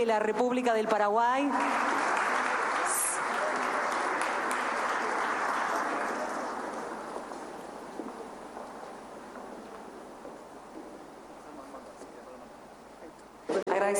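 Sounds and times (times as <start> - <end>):
speech: 0.0 - 1.9
loud applause: 1.5 - 8.8.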